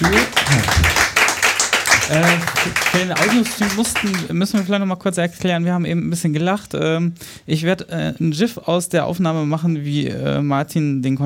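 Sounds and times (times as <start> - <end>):
speech: 0.0 - 0.7, 2.1 - 11.2
audience applause: 0.0 - 4.7.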